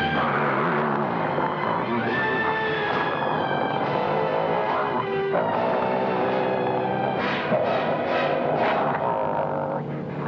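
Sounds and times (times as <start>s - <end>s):
man growling and snarling like a dog over phone: 0.1s - 10.2s.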